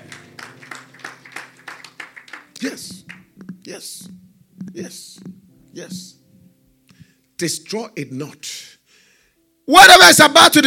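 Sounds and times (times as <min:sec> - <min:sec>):
church congregation rhythmic hand clapping: 0:00.0 - 0:06.2
speech: 0:02.6 - 0:03.1, 0:03.7 - 0:06.2, 0:07.4 - 0:08.6, 0:09.7 - 0:10.6.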